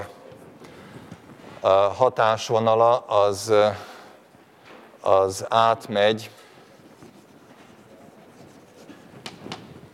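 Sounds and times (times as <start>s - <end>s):
speech: 1.6s - 3.9s, 5.0s - 6.4s
pen strokes scratching while writing an equation: 6.7s - 9.7s.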